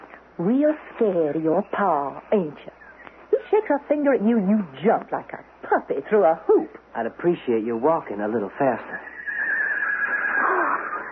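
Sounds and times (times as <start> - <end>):
speech: 0.4 - 2.7, 3.5 - 9.1
colt whinnying: 9.0 - 11.1.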